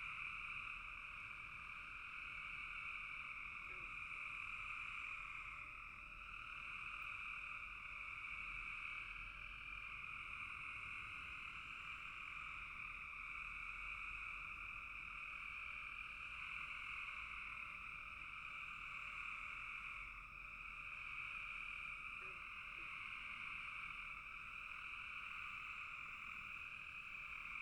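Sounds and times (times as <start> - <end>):
frog chorus trilling: 0.0 - 27.6.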